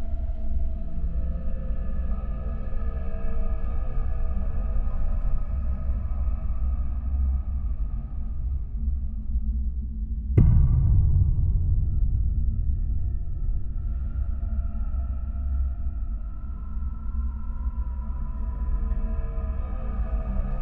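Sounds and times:
dark ambience: 0:00.0 - 0:20.6.

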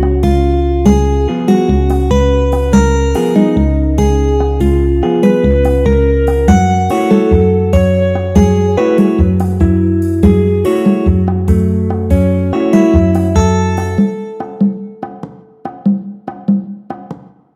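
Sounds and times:
music in mixolydian mode: 0:00.0 - 0:17.2.

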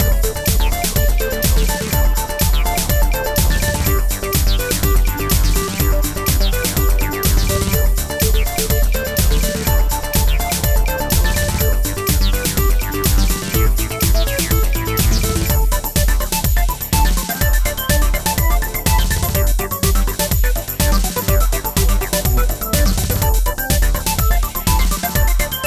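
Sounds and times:
happy trance music: 0:00.0 - 0:25.6.

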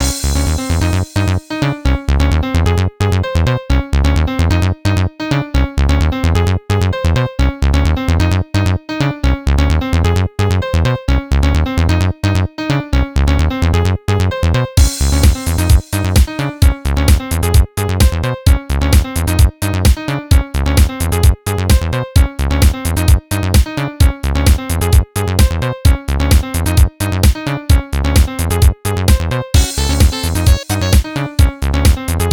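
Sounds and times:
house music: 0:00.0 - 0:13.7, 0:14.4 - 0:32.3.

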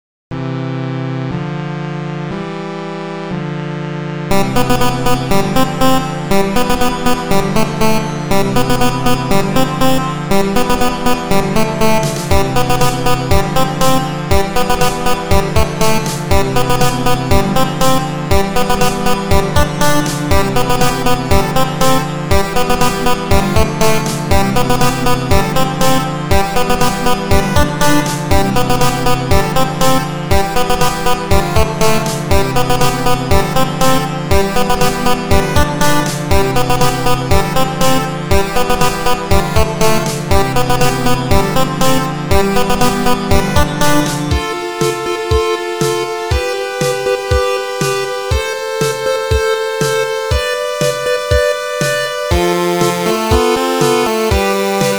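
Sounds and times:
chiptune music: 0:00.3 - 0:54.9.

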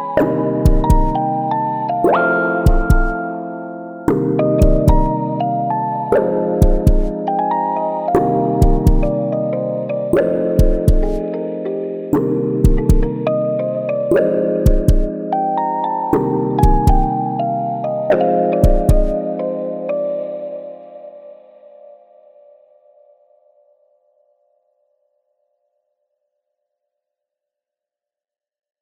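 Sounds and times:
jazz synth music: 0:00.0 - 0:21.1.

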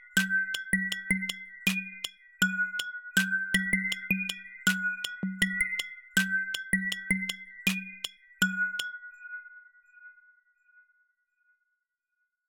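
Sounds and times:
background music: 0:00.0 - 0:08.9.

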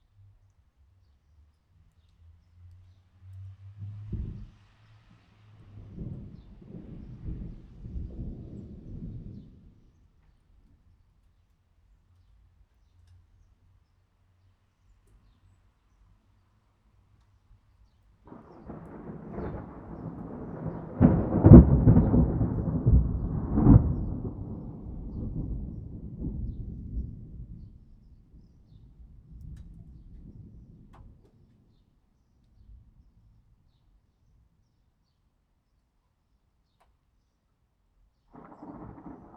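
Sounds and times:
thunder: 0:04.0 - 0:04.5, 0:05.6 - 0:09.9, 0:18.3 - 0:31.4, 0:38.3 - 0:39.3.

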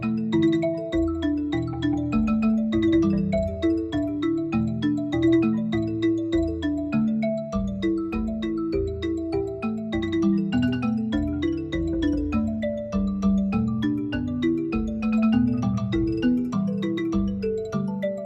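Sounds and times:
bamboo instrument solo: 0:00.0 - 0:18.2.

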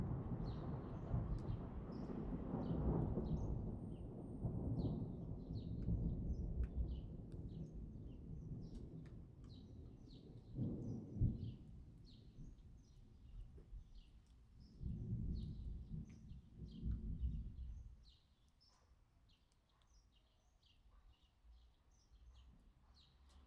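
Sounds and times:
thunder: 0:00.0 - 0:09.3, 0:10.4 - 0:11.7, 0:14.8 - 0:17.8.

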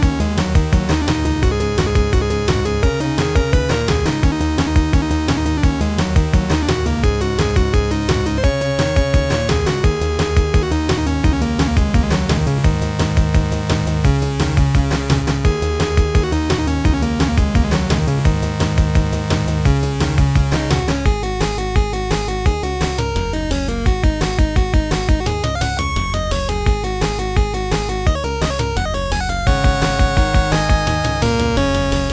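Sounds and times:
rock rhythm jingle: 0:00.0 - 0:32.1.

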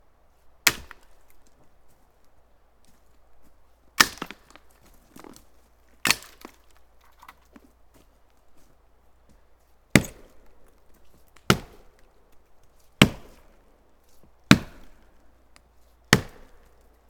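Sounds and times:
chopping tree: 0:00.7 - 0:01.6, 0:04.0 - 0:05.4, 0:06.0 - 0:07.4, 0:09.9 - 0:10.5, 0:11.4 - 0:12.0, 0:13.0 - 0:13.6, 0:14.5 - 0:15.1, 0:16.1 - 0:16.8.

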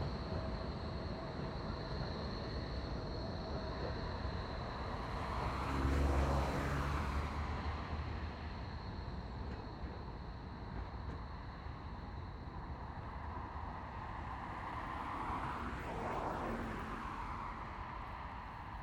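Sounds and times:
city tram: 0:00.0 - 0:18.8
city street traffic with cars: 0:04.3 - 0:09.5, 0:12.6 - 0:18.8.

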